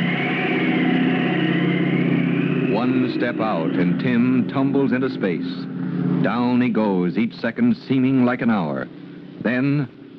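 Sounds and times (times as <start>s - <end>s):
airplane engine drone: 0.0s - 10.1s
speech: 2.8s - 10.1s.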